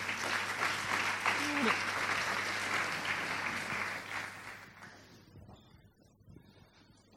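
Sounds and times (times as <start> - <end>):
audience applause: 0.0 - 5.0.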